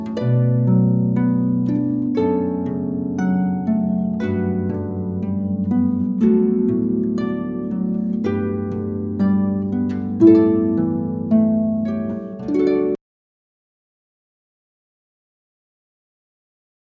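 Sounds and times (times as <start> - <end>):
short canon: 0.0 - 13.0.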